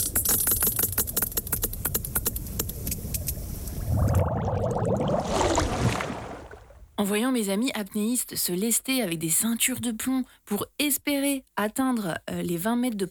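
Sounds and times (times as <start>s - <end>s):
sperm whale echolocation clicks: 0.0s - 3.8s
murky warbling underwater drone: 1.6s - 7.0s
low rumbling wash: 2.9s - 7.0s
speech: 7.0s - 13.0s.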